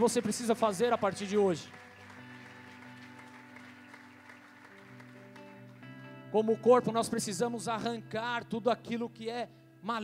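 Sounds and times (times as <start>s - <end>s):
speech: 0.0s - 1.9s, 6.3s - 10.0s
audience applauding: 0.0s - 6.0s.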